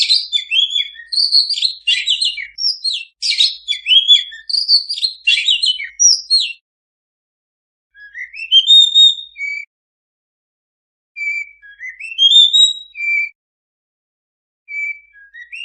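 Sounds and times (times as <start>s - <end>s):
Oriental magpie-robin singing vigorously: 0.0s - 6.6s, 7.9s - 9.7s, 11.2s - 13.3s, 14.7s - 15.6s.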